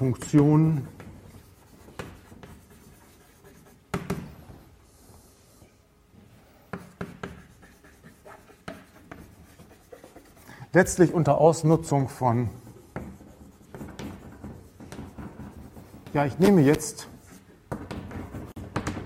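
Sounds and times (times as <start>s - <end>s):
speech: 0.0s - 1.0s, 10.8s - 12.6s, 16.2s - 17.1s
marker or chalk scratching across a board during a lecture: 0.0s - 5.4s, 6.6s - 19.0s.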